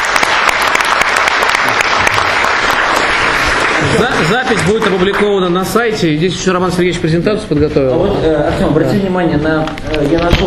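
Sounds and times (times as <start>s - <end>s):
audience applause at a scientific round-table discussion: 0.0s - 5.6s
speech: 3.8s - 10.4s.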